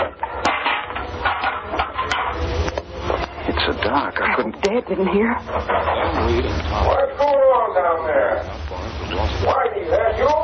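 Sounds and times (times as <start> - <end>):
person stumbling into a rain barrel and metal pail: 0.0 - 6.9
speech: 3.9 - 7.2, 7.8 - 10.4.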